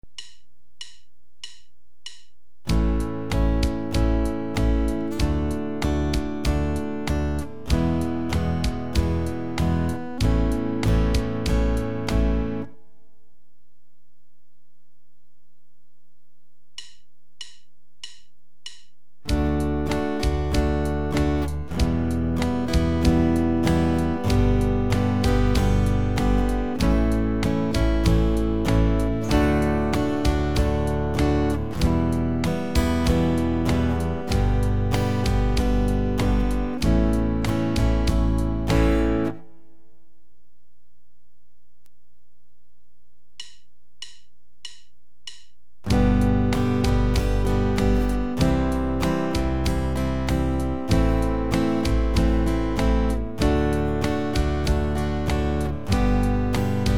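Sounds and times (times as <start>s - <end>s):
guitar chord progressions: 2.7s - 12.9s, 19.3s - 39.8s, 45.9s - 56.9s.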